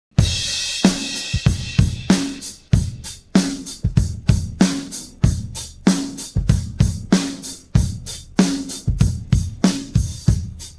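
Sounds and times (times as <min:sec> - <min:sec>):
drum pattern: 0:00.1 - 0:10.7.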